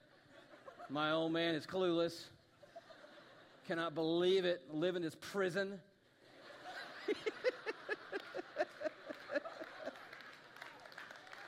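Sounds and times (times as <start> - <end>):
laughter: 0.0 - 1.3, 2.5 - 3.9, 6.2 - 11.4
speech: 0.9 - 2.4, 3.7 - 5.9, 7.1 - 7.5
dads clapping: 7.6 - 11.4.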